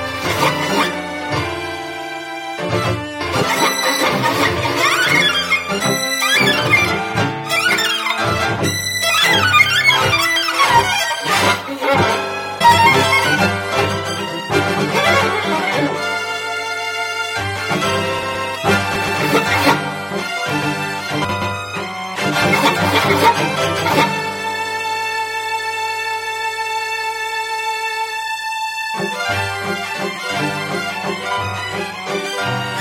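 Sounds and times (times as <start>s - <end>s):
satirical radio waltz on violin: 0.0s - 32.7s.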